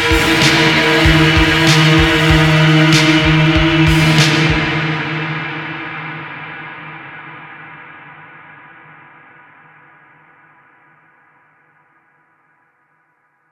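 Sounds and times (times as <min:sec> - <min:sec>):
solo drone: 0:00.0 - 0:07.9.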